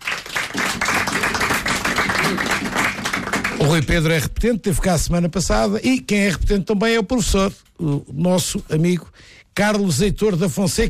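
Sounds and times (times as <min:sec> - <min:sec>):
audience round of applause: 0:00.0 - 0:04.0
speech: 0:03.6 - 0:10.8.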